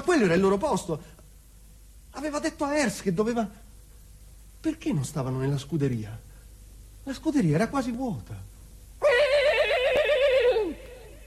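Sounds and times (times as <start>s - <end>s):
speech: 0.1s - 1.2s, 2.2s - 3.6s, 4.6s - 6.3s, 7.0s - 8.5s
horse neighing: 9.0s - 11.1s.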